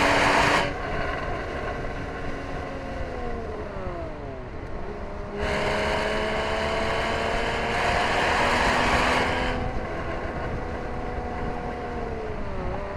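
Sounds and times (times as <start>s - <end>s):
Porsche Boxster S engine: 0.0s - 12.9s.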